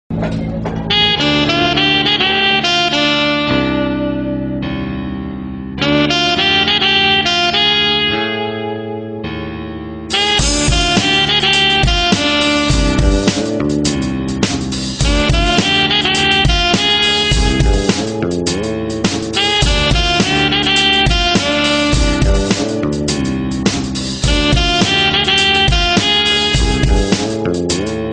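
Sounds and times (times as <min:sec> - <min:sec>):
saxophone: 0:00.6 - 0:04.8, 0:05.8 - 0:09.5, 0:10.1 - 0:28.1.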